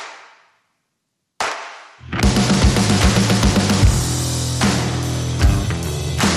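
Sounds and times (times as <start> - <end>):
drums: 1.4 - 6.3
bass: 2.0 - 6.3.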